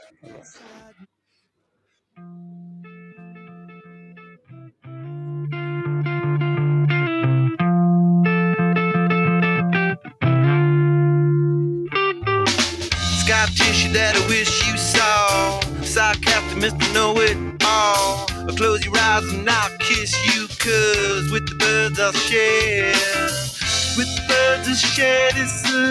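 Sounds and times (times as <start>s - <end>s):
speech: 0.2s - 1.2s, 18.7s - 25.8s
rock song intro with distorted electric guitar: 5.5s - 25.8s.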